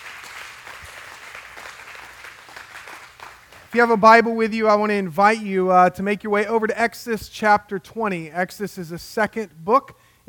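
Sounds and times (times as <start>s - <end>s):
church congregation applauding to welcome guests during a morning service: 0.0s - 4.0s
speech: 3.7s - 10.0s.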